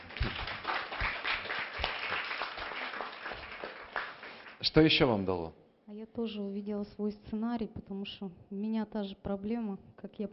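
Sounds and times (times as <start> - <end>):
audience applause: 0.0 - 4.7
speech: 4.6 - 10.3.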